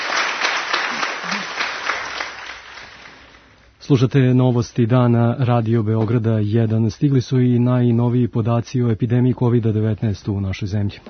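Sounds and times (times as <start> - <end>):
crowd applauding at a commemoration in Radio Belgrade's Stone Hall: 0.0 - 3.6
speech: 3.9 - 11.0.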